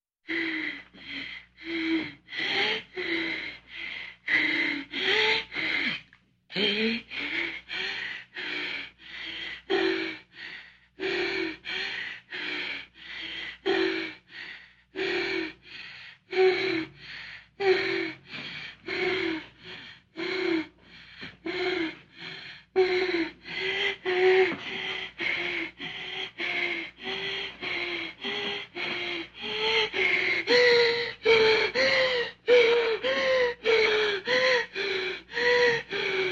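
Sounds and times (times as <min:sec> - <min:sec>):
woman breathing heavily from pleasure: 0:00.3 - 0:36.3.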